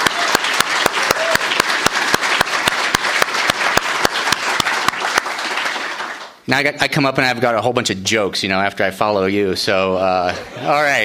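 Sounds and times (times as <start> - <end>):
crowd applauding: 0.0 - 6.4
speech: 6.5 - 11.0.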